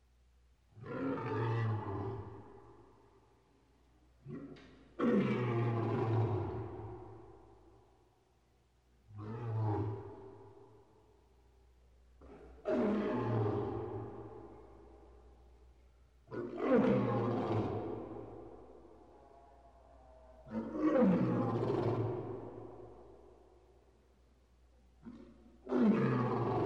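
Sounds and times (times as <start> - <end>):
big cat roaring in a cage: 0.8 - 2.4, 4.2 - 6.9, 12.2 - 14.4, 16.3 - 18.4, 20.4 - 22.7, 25.0 - 26.6.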